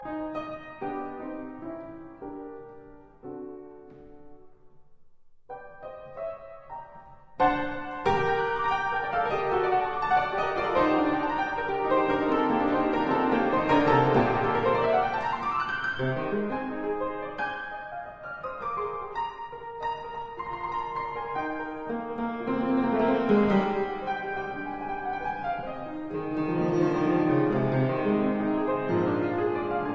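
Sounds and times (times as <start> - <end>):
keyboard sonata in G minor: 0.0 - 29.9.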